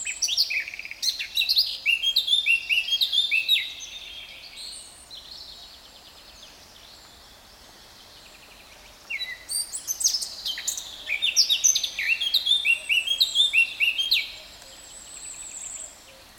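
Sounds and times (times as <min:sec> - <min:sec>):
Sylvia atricapilla Eurasian blackcap singing: 0:00.0 - 0:04.8, 0:09.1 - 0:14.4.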